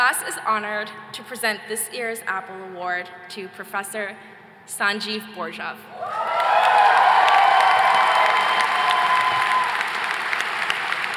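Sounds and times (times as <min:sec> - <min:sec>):
speech: 0:00.1 - 0:06.9
audience applause: 0:06.1 - 0:11.1.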